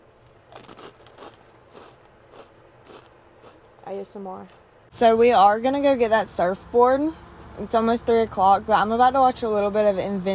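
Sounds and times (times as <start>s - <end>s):
crunching kettle-cooked salt and vinegar potato chips: 0.2s - 3.8s
soft chewing: 0.2s - 4.7s
speech: 3.9s - 10.3s.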